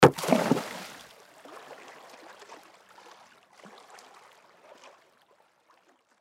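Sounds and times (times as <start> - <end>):
rock dropped splashing into water: 0.0 - 1.1.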